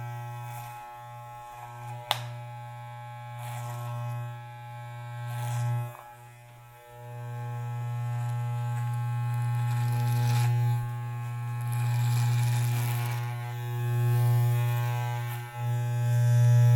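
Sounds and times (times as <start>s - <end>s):
hair being cut by a barber: 0.0s - 16.7s.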